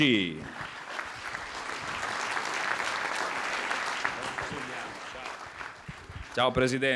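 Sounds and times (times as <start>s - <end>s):
speech: 0.0s - 0.7s, 6.4s - 6.9s
audience applause: 0.0s - 6.5s.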